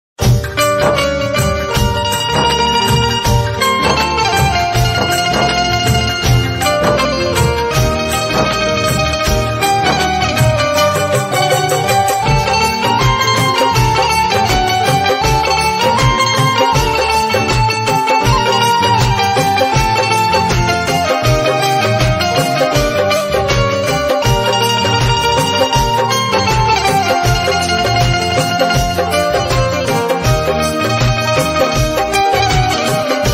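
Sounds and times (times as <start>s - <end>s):
Desh Bhakti patriotic instrumental ringtone: 0.3s - 33.3s.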